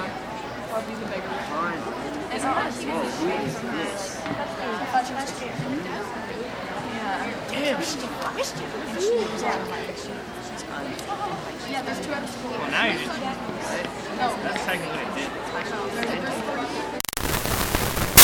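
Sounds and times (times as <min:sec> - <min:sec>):
crowd of teens chit chat at graduation: 0:00.0 - 0:17.1.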